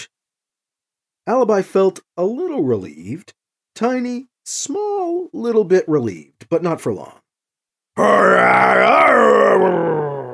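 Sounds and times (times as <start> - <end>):
speech: 1.3 - 7.2, 8.0 - 10.0
person voicing a loud angry growl: 8.0 - 10.3.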